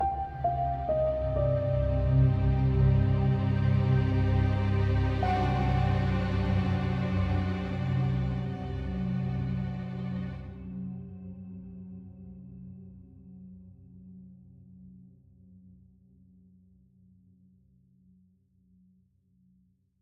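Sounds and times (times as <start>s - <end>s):
string instrument: 0.0s - 12.2s.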